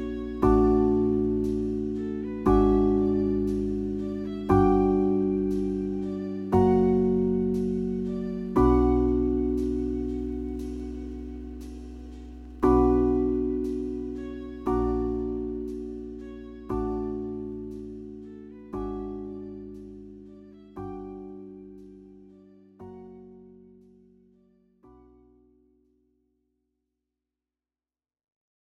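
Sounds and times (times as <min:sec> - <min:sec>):
jazz club music: 0:00.0 - 0:21.2.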